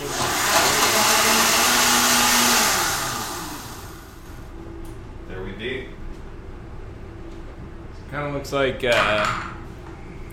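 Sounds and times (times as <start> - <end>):
blender blending butter and oil: 0.0 - 4.3
speech: 8.2 - 9.5.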